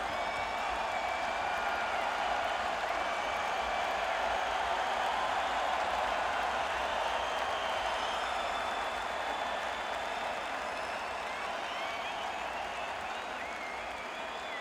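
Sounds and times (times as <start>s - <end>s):
arena crowd: 0.0s - 14.6s.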